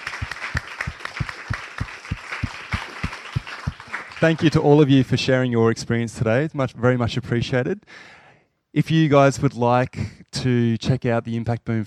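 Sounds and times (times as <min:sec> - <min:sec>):
audience round of applause: 0:00.0 - 0:04.6
speech: 0:04.2 - 0:11.8.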